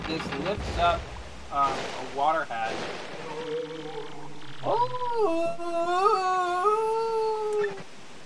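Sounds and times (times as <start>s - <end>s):
speech: 0.1s - 3.1s, 4.6s - 6.5s
video game ghost freaky voice: 3.3s - 7.9s.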